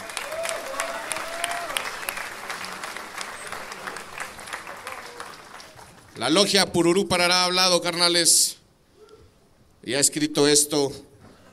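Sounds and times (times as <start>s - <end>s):
applause: 0.0s - 6.4s
speech: 6.2s - 8.6s, 9.9s - 11.5s.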